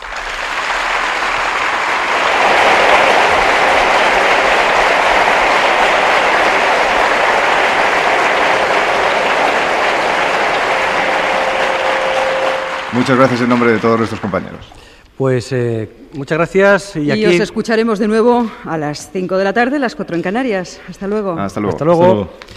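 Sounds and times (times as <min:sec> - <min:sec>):
audience applause in a packed Sala Pereda: 0:00.0 - 0:14.9
speech: 0:13.0 - 0:22.5.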